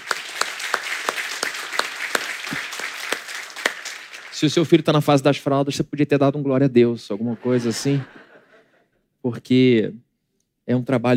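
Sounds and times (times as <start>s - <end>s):
audience applause: 0.0s - 4.9s
speech: 4.4s - 8.3s, 9.2s - 10.0s, 10.7s - 11.1s
laughter: 7.1s - 8.9s.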